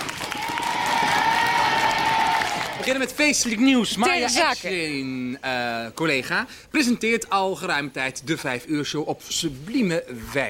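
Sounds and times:
applause and cheering: 0.0s - 3.2s
speech: 2.9s - 10.4s.

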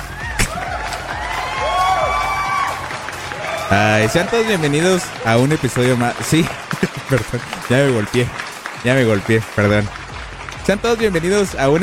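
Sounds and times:
crowd clapping and cheering sound effect: 0.0s - 11.8s
sharp thump: 0.4s - 0.6s
laughter: 3.6s - 9.9s
speech: 3.7s - 10.0s, 10.6s - 11.8s.

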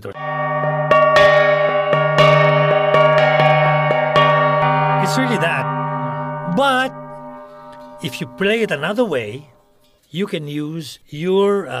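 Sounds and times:
speech: 0.0s - 0.9s, 5.2s - 5.8s, 6.5s - 7.0s, 8.0s - 9.5s, 10.1s - 11.7s
gangsa gong struck with stick: 0.2s - 9.5s.

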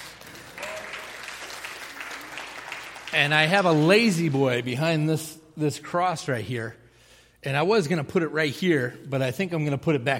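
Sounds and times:
audience applause: 0.0s - 4.7s
speech: 3.1s - 6.8s, 7.4s - 10.1s.

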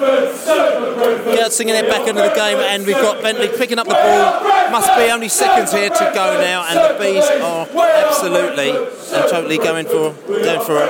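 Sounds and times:
large football crowd singing in stadium: 0.0s - 10.8s
speech: 0.9s - 10.8s.

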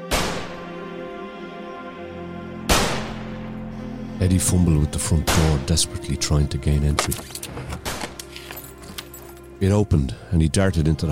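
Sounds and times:
gunshots: 0.1s - 0.6s, 2.7s - 3.3s
speech: 4.2s - 7.7s, 9.6s - 11.0s.

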